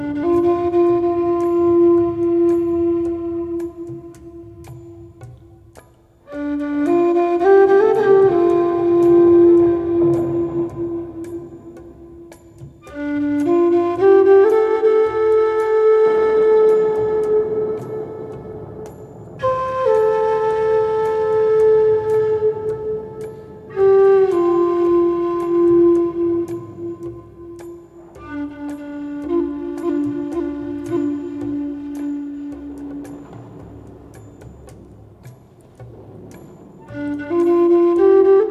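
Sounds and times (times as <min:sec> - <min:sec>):
relaxing Native American flute music: 0:00.0 - 0:38.4
thunder: 0:07.6 - 0:13.4, 0:14.5 - 0:38.4.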